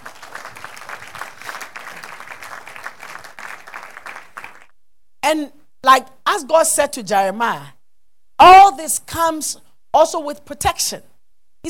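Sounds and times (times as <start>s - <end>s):
audience clapping hands in applause: 0.0s - 4.7s
speech: 5.3s - 7.8s, 8.4s - 11.6s.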